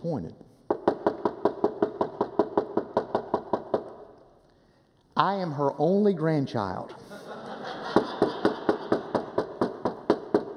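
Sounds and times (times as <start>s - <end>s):
speech: 0.0s - 0.5s, 5.2s - 7.2s
knocking on a door: 0.7s - 3.9s, 8.0s - 10.5s
laughter: 7.0s - 9.4s.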